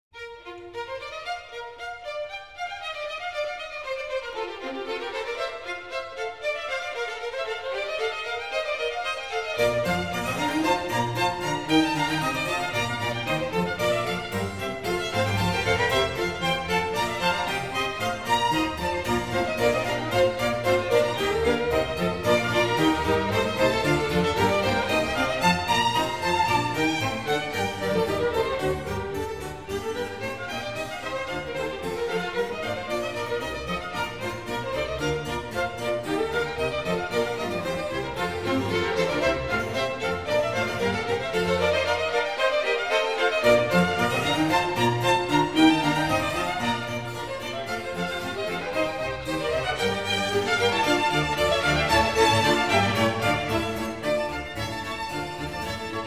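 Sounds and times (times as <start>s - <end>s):
baroque concerto a cinque in B flat major allegro vivace: 0.0s - 56.0s.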